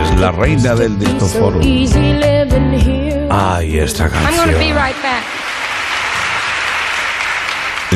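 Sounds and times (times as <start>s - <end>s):
speech: 0.2s - 5.4s
brief voice: 4.1s - 5.0s
concert audience applauding a singer on stage: 4.1s - 7.9s.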